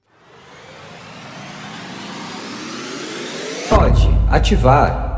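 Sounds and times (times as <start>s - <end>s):
engine-like roar in radio show jingle for an insurance segment: 0.0s - 4.0s
speech: 3.9s - 5.0s.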